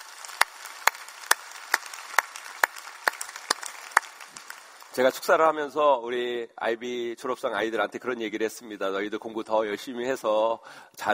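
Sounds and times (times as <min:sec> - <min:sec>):
audience applause: 0:00.0 - 0:05.4
speech: 0:05.0 - 0:11.1.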